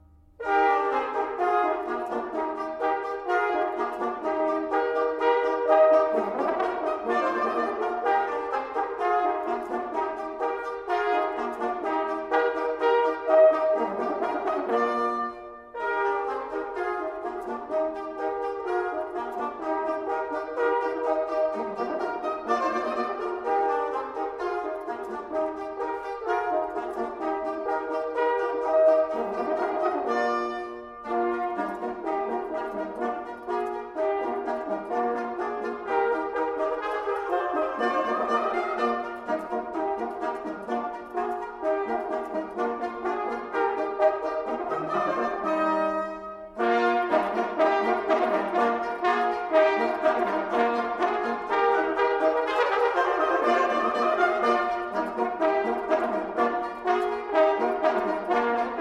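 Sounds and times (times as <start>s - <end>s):
trumpet: 0.0s - 58.7s.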